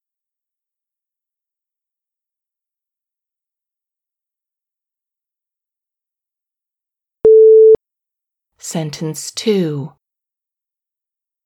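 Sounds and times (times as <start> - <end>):
electronic beep: 7.3 - 7.8
speech: 8.6 - 10.0.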